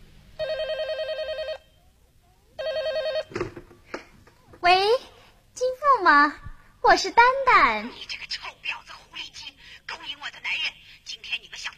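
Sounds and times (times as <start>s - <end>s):
telephone ringing: 0.4s - 1.8s, 2.6s - 3.6s
speech: 6.1s - 8.3s.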